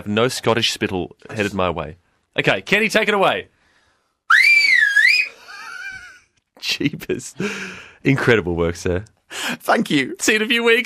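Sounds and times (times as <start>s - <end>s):
speech: 0.0s - 3.5s, 6.6s - 10.8s
loud two-finger mouth whistle: 4.3s - 5.3s.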